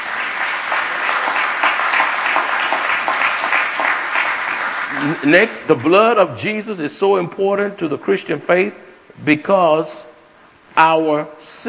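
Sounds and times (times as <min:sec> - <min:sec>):
audience hand clapping in praise: 0:00.0 - 0:05.9
speech: 0:05.0 - 0:10.1, 0:10.8 - 0:11.6.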